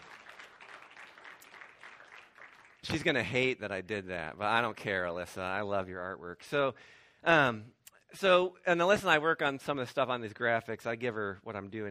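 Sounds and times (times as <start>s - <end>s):
audience clapping: 0.0s - 3.4s
speech: 2.9s - 11.8s.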